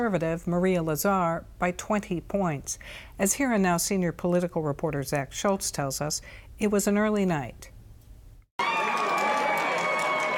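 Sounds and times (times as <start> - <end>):
speech: 0.0 - 7.8
crowd cheering at an election night party as a Wisconsin Supreme Court race is called: 8.6 - 10.3.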